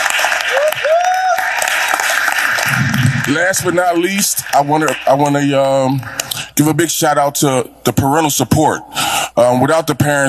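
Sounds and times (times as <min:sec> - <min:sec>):
round of applause: 0:00.0 - 0:05.2
speech: 0:03.3 - 0:10.2.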